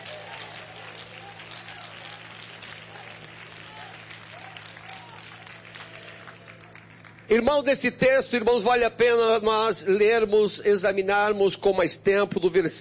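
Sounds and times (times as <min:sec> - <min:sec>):
audience giving strong applause: 0:00.0 - 0:07.4
speech: 0:07.3 - 0:12.7.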